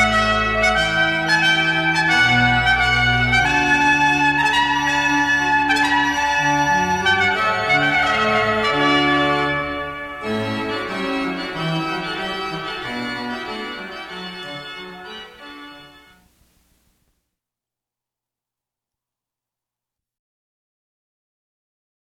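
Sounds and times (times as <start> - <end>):
fanfare: 0.0 - 16.2.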